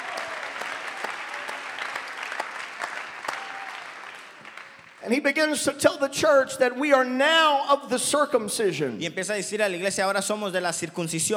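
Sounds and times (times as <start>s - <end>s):
congregation applauding during a bilingual church service: 0.0s - 5.1s
speech: 5.0s - 11.3s.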